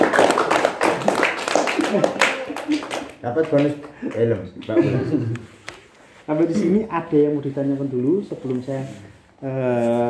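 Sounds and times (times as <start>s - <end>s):
audience clapping: 0.0s - 4.8s
speech: 1.9s - 2.3s, 3.2s - 5.5s, 6.3s - 10.0s.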